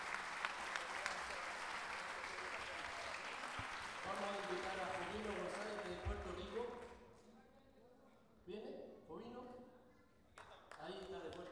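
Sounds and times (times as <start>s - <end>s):
audience clapping for a payador at an international payador gala: 0.0s - 7.0s, 10.4s - 11.4s
speech: 4.1s - 6.9s.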